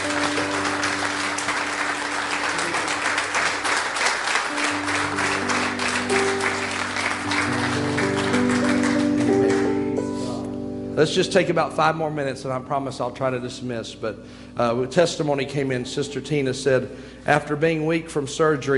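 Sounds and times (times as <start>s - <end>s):
audience clapping: 0.0s - 10.2s
speech: 11.0s - 18.7s.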